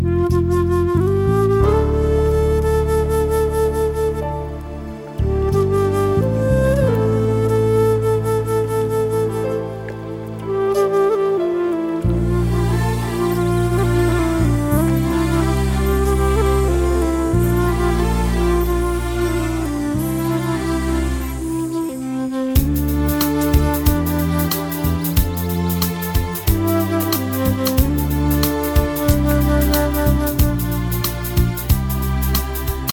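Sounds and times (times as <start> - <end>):
flute: 0.0 - 32.9.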